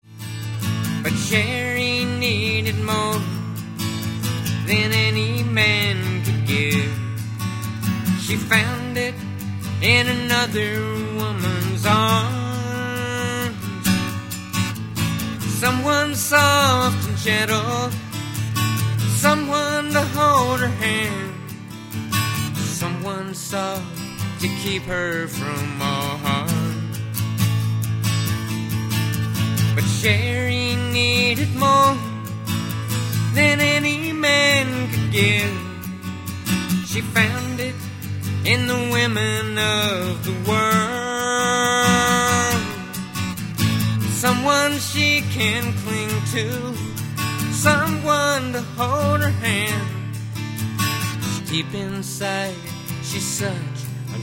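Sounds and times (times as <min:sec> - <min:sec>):
acoustic music: 0:00.0 - 0:54.2.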